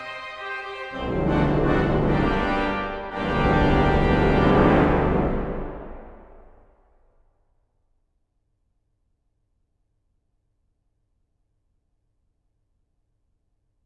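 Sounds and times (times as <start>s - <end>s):
grand chorus: 0.0s - 6.5s.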